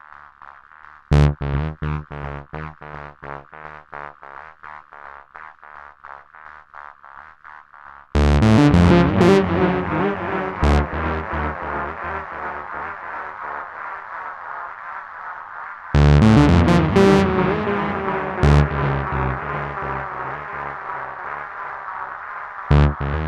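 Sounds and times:
modulated delay effect: 8.2s - 15.0s, 16.0s - 23.2s.

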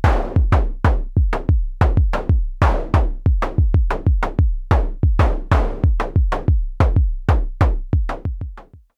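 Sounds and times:
Behringer Syncussion SY 1 groove: 0.0s - 8.9s.

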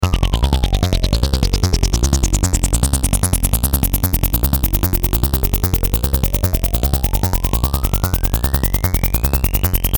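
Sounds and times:
bass loop: 0.0s - 9.9s.

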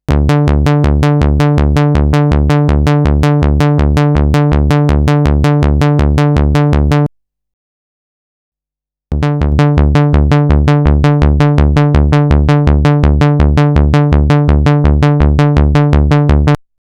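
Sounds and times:
MonoPoly synthesizer sequence: 0.1s - 7.1s, 9.1s - 16.6s.

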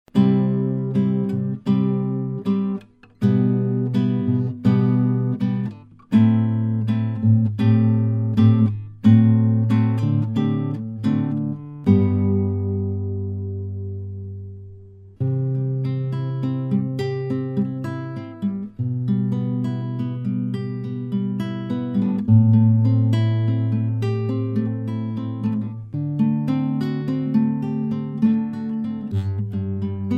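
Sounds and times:
acoustic guitar recorded through Shure SM4 microphone with pop filter: 0.0s - 30.1s.

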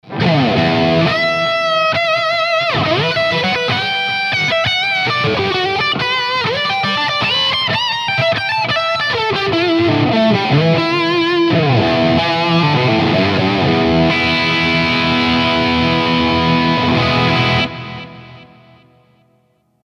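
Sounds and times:
Friedman crunch electric guitar with delay and reverb: 0.0s - 19.5s.

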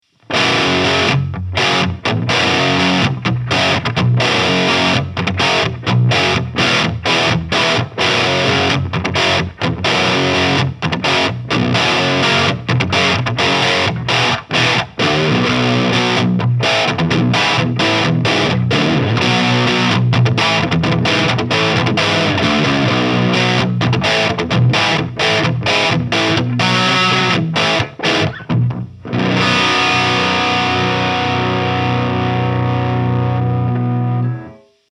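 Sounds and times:
baritone heavy crunch tone: 0.3s - 34.5s.

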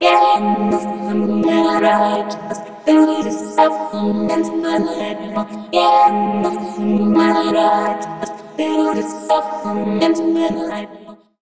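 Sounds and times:
vocoder mixed synth with pitch Q filter LFO freeze effect: 0.0s - 11.2s.

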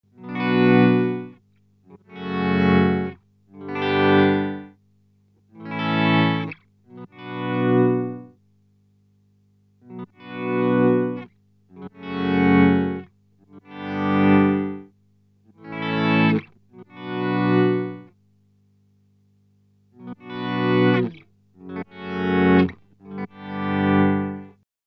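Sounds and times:
EHX Pico Attack Decay effects pedal in mono mode with different sensitivity settings: 0.1s - 4.8s, 5.6s - 8.4s, 9.8s - 14.9s, 15.5s - 18.1s, 20.0s - 24.5s.

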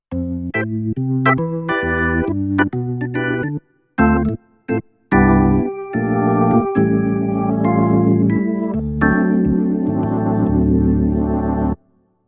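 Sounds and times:
Yamaha P-225 organ: 0.2s - 11.8s.

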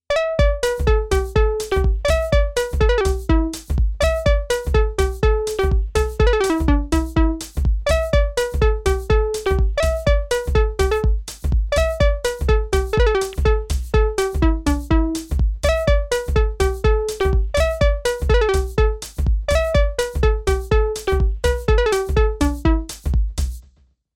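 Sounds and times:
Behringer Kobol synthesized steel drum: 0.1s - 23.5s.

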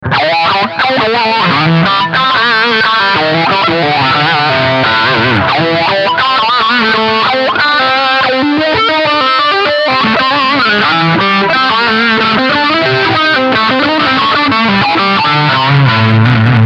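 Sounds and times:
low-pass filtered overdrive: 0.0s - 16.6s.

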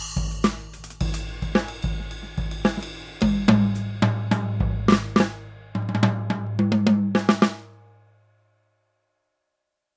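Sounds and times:
electronic drum kit: 0.0s - 7.6s.

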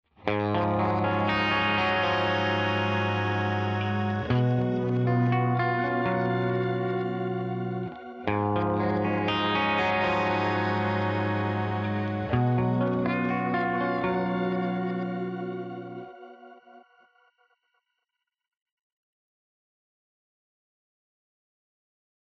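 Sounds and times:
riff through Crystallizer effect: 0.2s - 16.8s.

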